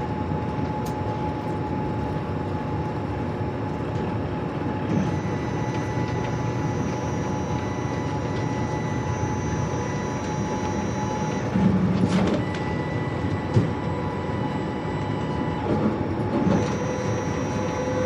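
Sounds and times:
cruise ship bridge interior ambience: 0.0s - 18.0s.

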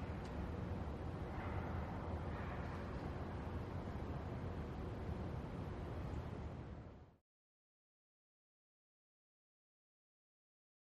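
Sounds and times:
huge empty interior lobby ambience: 0.0s - 7.0s.

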